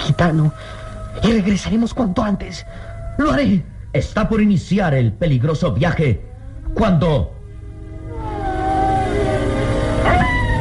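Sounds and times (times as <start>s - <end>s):
wolf howling: 0.0s - 3.6s, 6.0s - 10.5s
speech: 0.0s - 7.4s.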